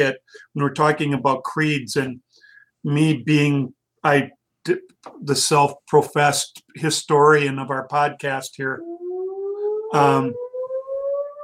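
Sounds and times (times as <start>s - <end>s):
speech: 0.0s - 2.2s, 2.8s - 9.0s, 9.9s - 10.4s
fire whistle siren in Coulomb, South Dakota: 8.6s - 11.4s.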